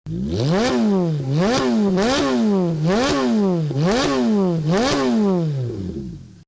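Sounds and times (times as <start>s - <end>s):
Ferrari F430 engine: 0.1s - 6.4s.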